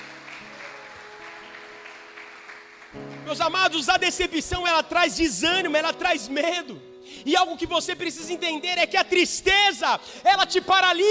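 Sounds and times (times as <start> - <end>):
audience applause: 0.0 - 3.3
speech: 2.9 - 11.1.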